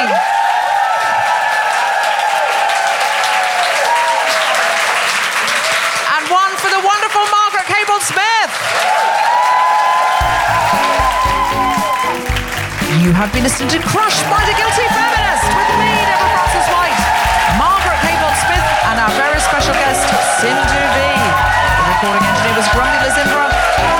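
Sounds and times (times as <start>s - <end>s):
cheering and whoops: 0.0s - 6.0s, 8.6s - 12.4s, 14.0s - 23.9s
audience applause: 0.0s - 23.9s
speech: 13.1s - 15.2s
voices shouting and talking: 14.1s - 23.9s.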